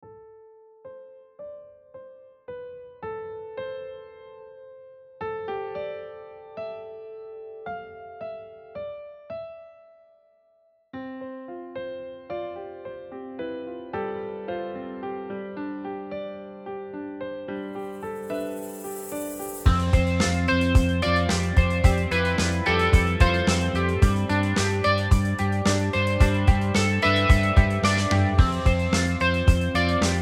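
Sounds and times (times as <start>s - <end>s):
rock music: 19.7s - 30.2s.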